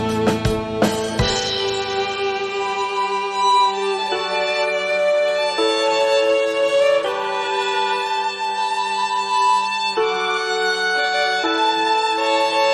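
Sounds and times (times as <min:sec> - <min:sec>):
drums: 0:00.0 - 0:02.9
guitar: 0:00.0 - 0:04.0
violins: 0:00.0 - 0:12.7.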